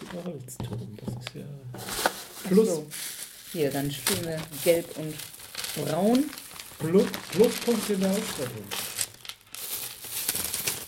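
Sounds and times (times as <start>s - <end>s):
speech: 0.1s - 8.9s
crinkling plastic bag: 1.8s - 10.8s.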